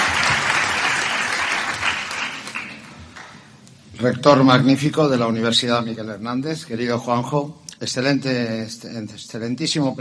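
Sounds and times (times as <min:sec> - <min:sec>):
audience applause: 0:00.0 - 0:03.3
speech: 0:04.0 - 0:09.9.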